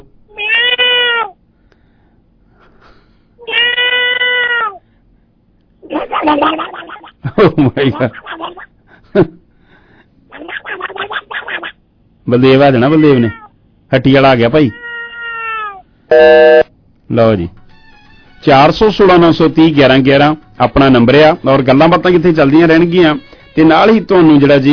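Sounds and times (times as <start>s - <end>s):
cat meowing: 0.3s - 1.4s, 3.4s - 4.8s, 12.9s - 13.5s, 14.6s - 15.9s
speech: 6.3s - 8.6s, 9.2s - 9.4s, 12.3s - 14.8s, 17.1s - 17.6s, 18.4s - 24.7s.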